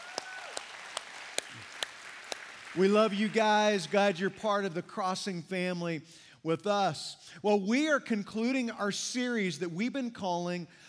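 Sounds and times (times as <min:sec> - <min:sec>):
scattered hand claps from a church congregation: 0:00.0 - 0:02.9
soft continuous noise: 0:00.0 - 0:10.8
speech: 0:02.8 - 0:10.8.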